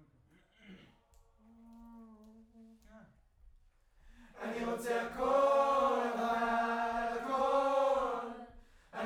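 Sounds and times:
distant choir: 4.4s - 9.0s.

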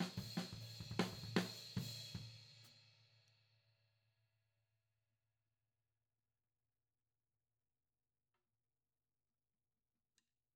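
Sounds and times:
tom drum: 0.0s - 2.3s.

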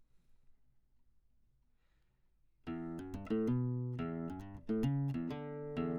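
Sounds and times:
classical guitar: 2.7s - 5.9s.

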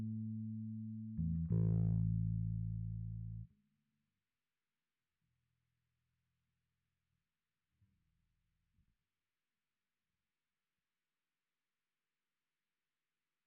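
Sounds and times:
bass guitar through SansAmp: 0.0s - 3.5s.

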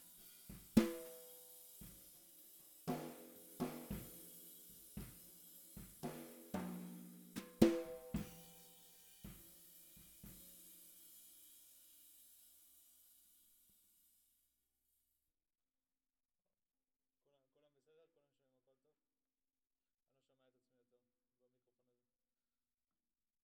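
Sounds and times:
snare drum: 0.0s - 11.3s.

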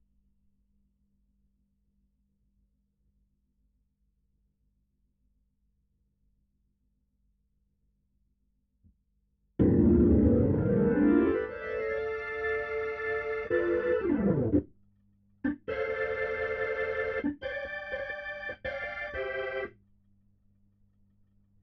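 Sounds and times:
Hammond organ: 9.6s - 14.6s, 15.5s - 19.7s.

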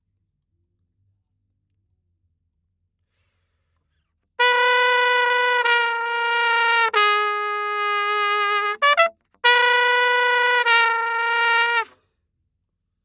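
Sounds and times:
trumpet: 4.4s - 12.0s.

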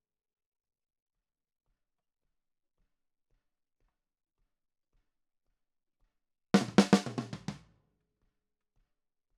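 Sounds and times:
snare drum: 6.6s - 7.6s.

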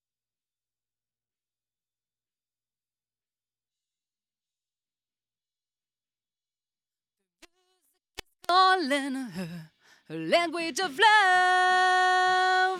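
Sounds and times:
vocals: 8.4s - 12.7s.

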